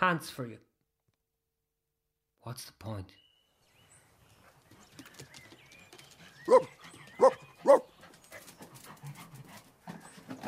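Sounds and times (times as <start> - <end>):
speech: 0.0 - 0.7, 2.4 - 3.2, 6.4 - 7.9
faint panting: 6.1 - 10.4
dog barking: 6.5 - 7.9.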